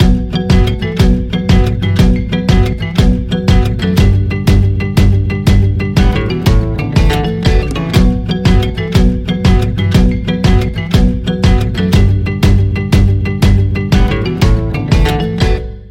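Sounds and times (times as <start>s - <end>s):
guitar ensemble: 0.0s - 15.8s.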